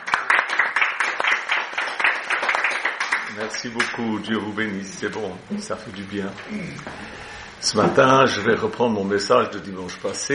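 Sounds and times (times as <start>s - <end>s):
applause for the musicians: 0.0s - 4.0s
speech: 3.4s - 10.3s.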